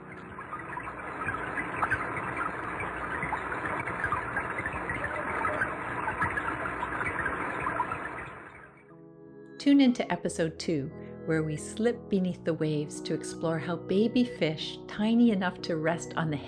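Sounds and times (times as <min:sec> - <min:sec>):
rain recorded underwater: 0:00.0 - 0:08.8
speech: 0:09.6 - 0:16.4.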